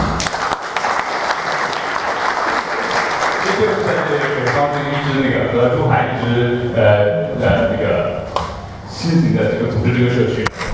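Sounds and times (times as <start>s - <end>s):
audience applause: 0.0s - 5.3s
speech: 3.6s - 8.3s, 8.9s - 10.6s.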